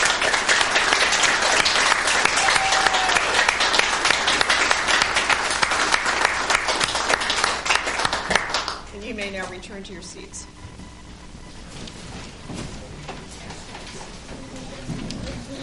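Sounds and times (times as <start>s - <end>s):
audience applause: 0.0s - 8.9s
speech: 9.7s - 10.6s.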